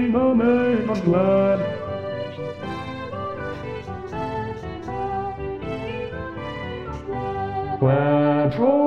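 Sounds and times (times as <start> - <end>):
bass: 0.0 - 8.7.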